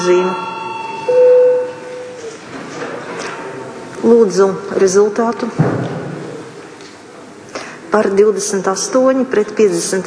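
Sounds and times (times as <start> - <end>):
speech: 0.0 - 0.5, 4.0 - 5.9, 7.9 - 10.0
parliament voting bell ringing: 0.0 - 2.4.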